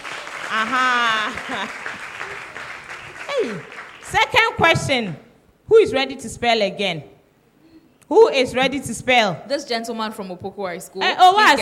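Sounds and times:
audience clapping for a contestant at a school spelling competition: 0.0s - 4.6s
speech: 0.5s - 2.8s, 3.4s - 7.2s, 8.1s - 11.6s.

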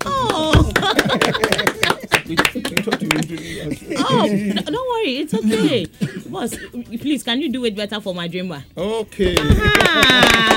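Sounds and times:
audience clapping: 0.0s - 3.5s, 9.3s - 10.5s
laughter: 0.0s - 5.8s, 9.4s - 10.5s
speech: 1.1s - 1.7s, 3.1s - 10.5s.

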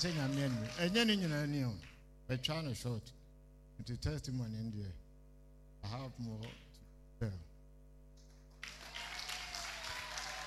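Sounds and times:
audience clapping: 0.0s - 1.1s, 8.2s - 10.4s
speech: 0.0s - 3.2s, 3.8s - 5.0s, 5.8s - 6.6s, 7.2s - 7.5s.

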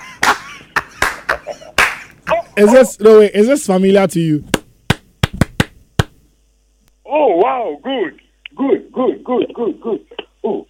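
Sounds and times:
classroom of pupils clapping in rhythm: 1.0s - 2.1s, 4.6s - 6.2s
speech: 2.6s - 4.6s, 7.6s - 10.6s.

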